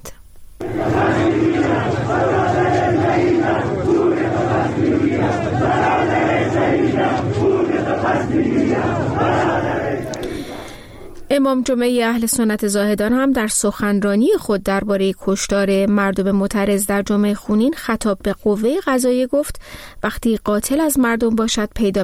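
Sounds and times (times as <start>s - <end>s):
protesters chanting slogans: 0.6s - 11.3s
speech: 11.3s - 22.0s.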